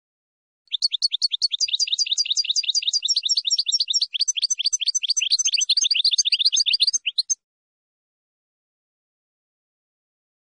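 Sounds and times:
finch chirping song: 0.7s - 7.4s.

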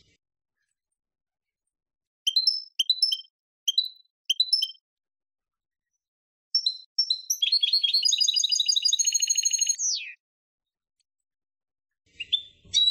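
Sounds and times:
finch song: 2.2s - 4.8s, 5.8s - 10.2s, 12.0s - 12.8s.

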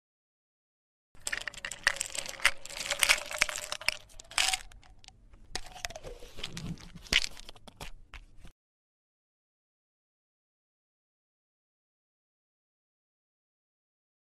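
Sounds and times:
pill bottle rattling: 1.2s - 8.2s.

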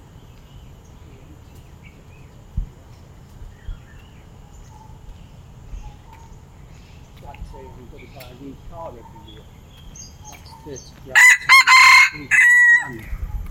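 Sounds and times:
red junglefowl brief broken crow: 11.1s - 13.1s.

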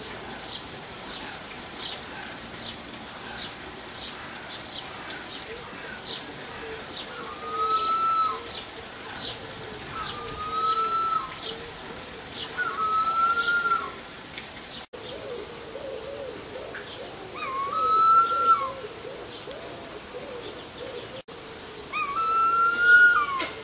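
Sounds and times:
Harpy eagle giving drawn-out whistled wails: 7.2s - 8.5s, 9.9s - 11.4s, 12.6s - 14.0s, 17.4s - 18.8s, 22.0s - 23.4s.

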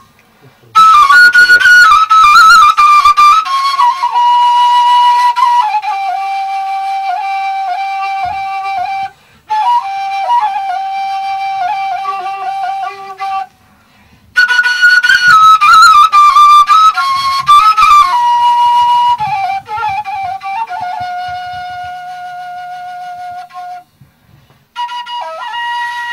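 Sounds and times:
ney taleshi: 0.0s - 26.1s.

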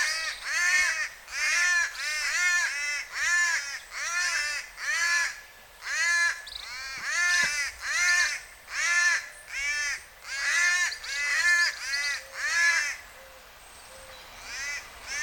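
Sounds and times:
Cuban palm crow cawing: 0.0s - 13.0s, 14.4s - 15.2s.

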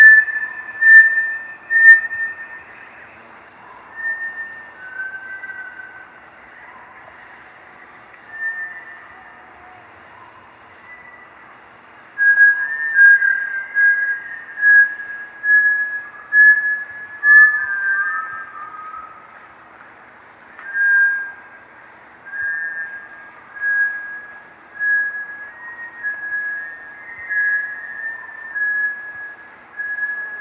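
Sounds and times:
Bartlett's tinamou pure whistled notes: 0.0s - 2.6s, 3.9s - 6.0s, 8.3s - 9.4s, 12.2s - 19.2s, 20.6s - 21.4s, 22.3s - 30.3s.

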